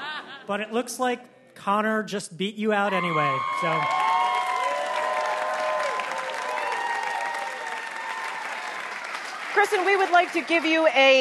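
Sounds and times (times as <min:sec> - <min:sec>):
speech: 0:00.5 - 0:04.0, 0:09.6 - 0:11.1
audience applause: 0:02.9 - 0:11.1.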